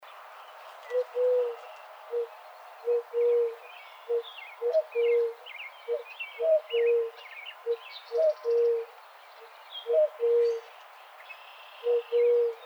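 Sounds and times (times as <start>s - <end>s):
Eurasian collared dove giving three-part coos: 0.9s - 8.9s, 9.8s - 10.7s, 11.8s - 12.6s.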